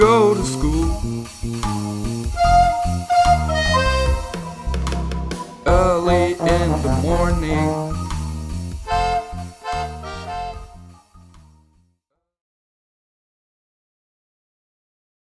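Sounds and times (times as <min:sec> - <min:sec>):
blues music: 0:00.0 - 0:11.6.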